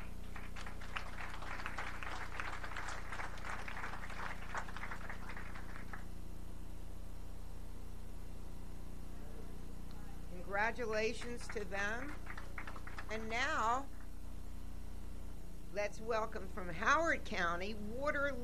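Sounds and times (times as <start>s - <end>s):
round of applause: 0.0s - 6.1s, 11.2s - 13.6s
speech: 10.6s - 12.3s, 13.1s - 14.0s, 15.7s - 18.4s.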